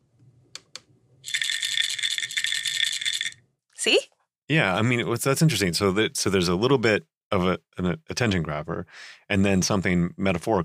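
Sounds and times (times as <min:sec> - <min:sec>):
pill bottle rattling: 0:01.3 - 0:03.4
speech: 0:03.8 - 0:10.6.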